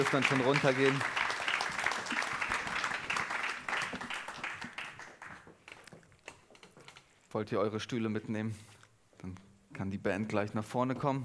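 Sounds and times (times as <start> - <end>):
speech: 0.0 - 1.2, 7.4 - 11.2
audience applause: 0.0 - 5.5.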